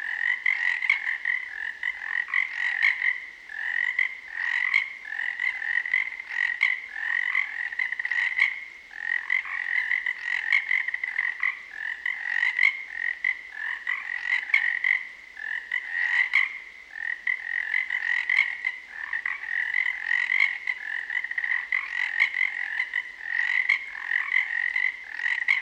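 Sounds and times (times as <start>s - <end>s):
Cascades frogs croaking at a pond: 0.0s - 25.6s.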